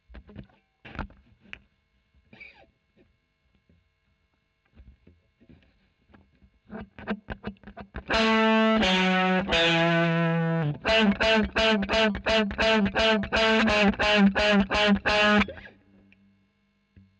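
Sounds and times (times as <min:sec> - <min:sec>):
overdriven electric guitar recorded with a Royer microphone: 0:06.7 - 0:15.7.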